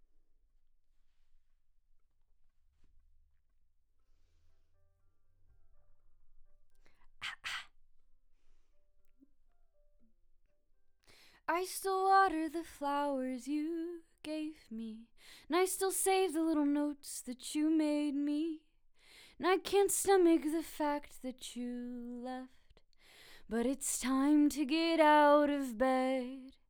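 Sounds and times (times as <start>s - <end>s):
vocals: 7.2s - 7.6s, 11.1s - 26.6s.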